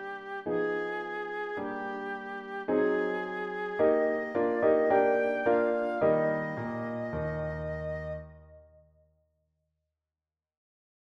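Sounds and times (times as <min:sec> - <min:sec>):
flute: 0:00.0 - 0:08.8
piano: 0:00.0 - 0:08.8.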